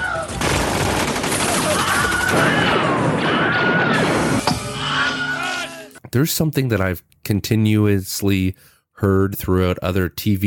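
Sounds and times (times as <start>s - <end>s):
gunfire: 0.2s - 4.4s
faint shouting voices: 1.5s - 6.0s
Wilhelm scream: 1.7s - 6.0s
speech: 6.1s - 10.4s.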